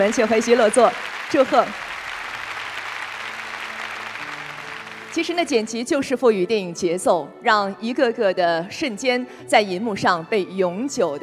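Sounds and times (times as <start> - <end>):
speech: 0.0 - 1.9, 5.2 - 11.2
audience applause: 0.0 - 5.8.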